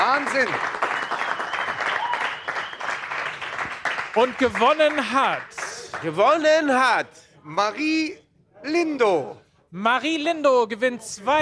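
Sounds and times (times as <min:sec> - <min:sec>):
audience applause: 0:00.0 - 0:06.3
speech: 0:00.2 - 0:00.9, 0:04.2 - 0:11.3.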